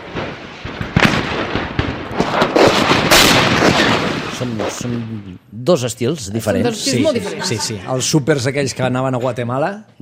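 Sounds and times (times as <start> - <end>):
mortar shells exploding: 0.0 - 4.7
speech: 4.4 - 10.0
laughter: 6.6 - 8.2.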